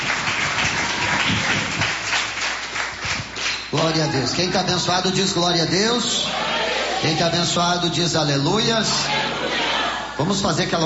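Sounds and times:
audience clapping: 0.0s - 4.5s
speech: 3.7s - 9.4s, 10.2s - 10.8s.

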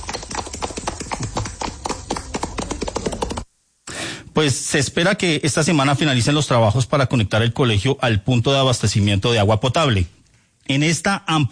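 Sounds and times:
applause: 0.0s - 3.4s
speech: 4.4s - 11.5s.

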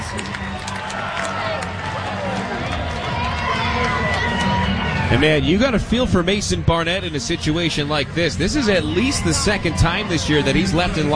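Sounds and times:
baseball stadium crowd cheering after game-tying hit: 0.0s - 11.1s
speech: 5.1s - 11.1s.

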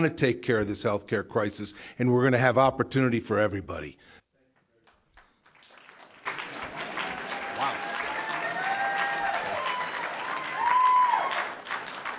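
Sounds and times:
speech: 0.0s - 4.2s
audience clapping: 4.8s - 12.1s.

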